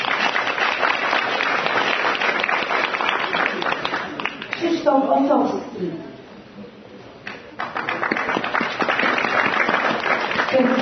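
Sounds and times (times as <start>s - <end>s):
audience applause: 0.0s - 4.6s, 7.3s - 10.8s
speech: 4.9s - 6.1s.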